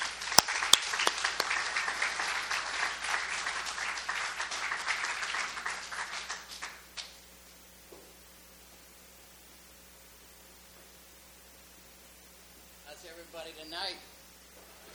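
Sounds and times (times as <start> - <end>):
audience applause at a recovery meeting welcoming a speaker: 0.0 - 6.8.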